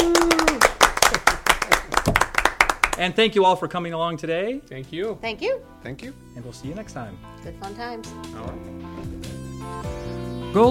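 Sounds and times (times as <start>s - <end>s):
scattered handclaps in a classroom: 0.0s - 3.1s
speech: 3.0s - 8.8s.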